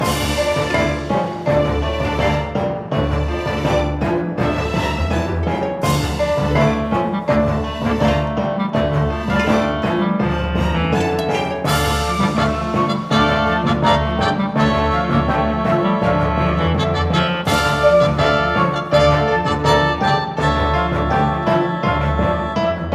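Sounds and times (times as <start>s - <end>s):
music track at 165 bpm: 0.0s - 22.9s.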